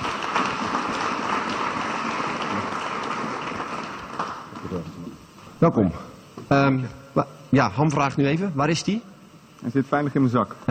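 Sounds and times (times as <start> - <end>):
audience applause: 0.0 - 5.0
speech: 4.2 - 5.0, 5.6 - 10.6.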